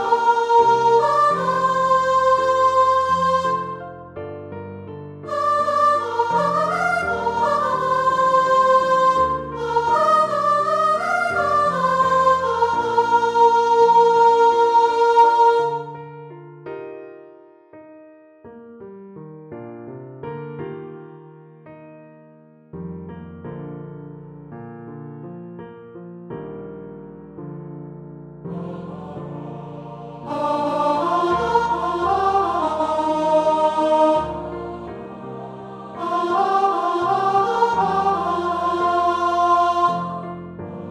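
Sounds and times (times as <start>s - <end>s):
upper voices: 0.0s - 3.8s, 5.3s - 15.9s, 28.5s - 40.8s.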